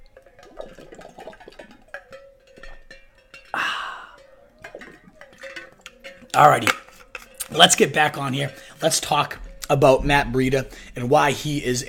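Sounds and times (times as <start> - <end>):
person drinking water: 0.0 - 7.5
speech: 6.4 - 6.8, 7.5 - 11.8.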